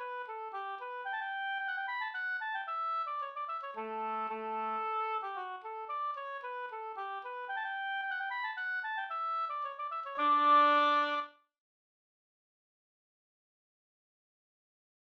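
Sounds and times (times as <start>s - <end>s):
Swedish polska folk dance tune: 0.0s - 11.3s.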